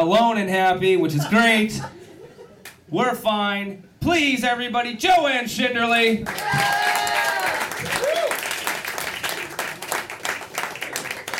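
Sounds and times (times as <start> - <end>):
speech: 0.0 - 2.0, 2.9 - 7.2
audience cheering and whooping: 6.3 - 8.8
audience applauding: 6.3 - 11.3.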